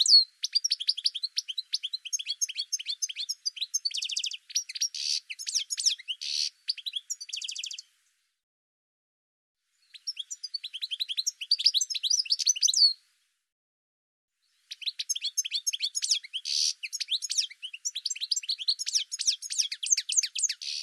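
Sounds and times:
bird song with high chirps, down-slurred notes and quick trills: 0.0s - 8.4s, 9.6s - 13.1s, 14.4s - 20.8s.

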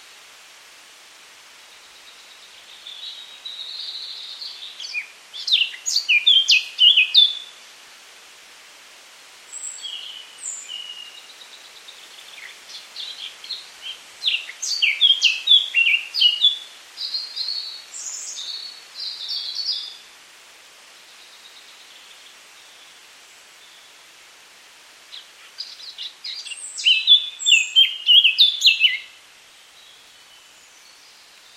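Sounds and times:
Eurasian Blackcap warbling and whistled song: 2.9s - 7.5s, 11.9s - 20.0s, 25.1s - 29.2s.

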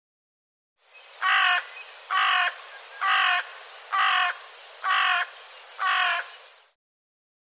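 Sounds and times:
bird cawing: 1.2s - 6.4s.

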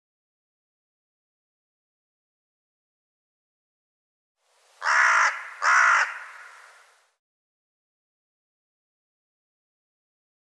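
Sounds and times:
bird cawing: 4.8s - 7.0s.

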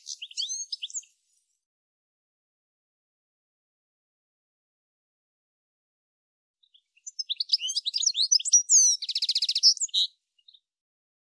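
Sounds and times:
bird chirping: 0.0s - 1.2s, 6.6s - 10.7s.

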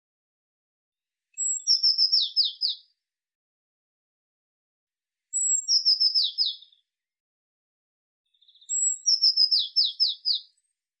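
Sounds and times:
Eurasian blue tit calling: 1.4s - 2.8s, 5.4s - 6.8s, 8.4s - 10.5s.

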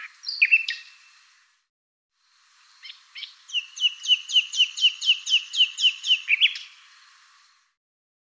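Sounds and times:
bird chirps and high thin whistles: 0.2s - 0.9s, 3.2s - 6.7s.

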